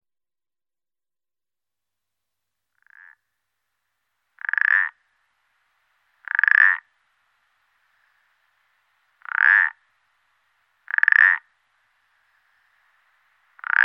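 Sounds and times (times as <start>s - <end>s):
common parsley frog croaking: 2.8s - 3.2s, 4.4s - 5.0s, 6.2s - 6.9s, 9.2s - 9.8s, 10.8s - 11.5s, 13.6s - 13.8s.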